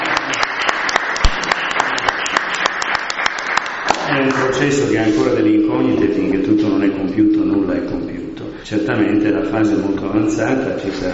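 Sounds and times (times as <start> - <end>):
audience applause: 0.0 - 4.6
speech: 4.5 - 11.1.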